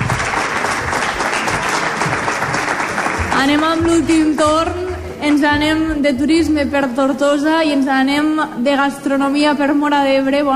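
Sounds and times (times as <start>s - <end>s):
audience applause: 0.0s - 4.5s
speech: 3.4s - 10.5s.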